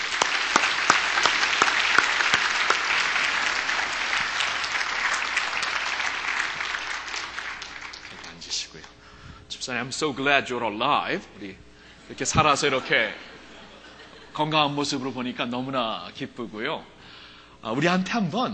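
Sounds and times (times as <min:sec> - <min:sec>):
audience applause welcoming a speaker: 0:00.0 - 0:08.8
speech: 0:09.7 - 0:13.3, 0:14.4 - 0:17.0, 0:17.6 - 0:18.5
laughter: 0:12.0 - 0:14.5.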